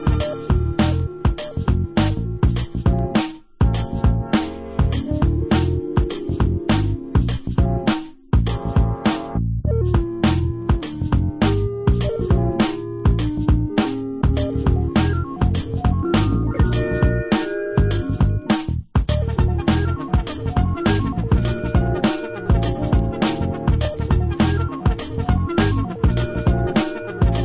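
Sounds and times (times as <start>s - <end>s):
instrumental music: 0.0s - 27.4s.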